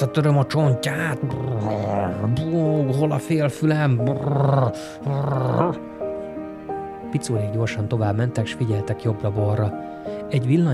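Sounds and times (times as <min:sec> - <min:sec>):
speech: 0:00.0 - 0:05.9, 0:07.1 - 0:10.7
boxer dog growling angrily: 0:01.2 - 0:02.4, 0:04.1 - 0:05.8.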